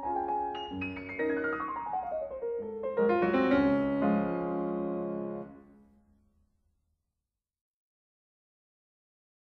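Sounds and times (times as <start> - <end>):
piano waltz in D flat major: 0.0 - 5.9.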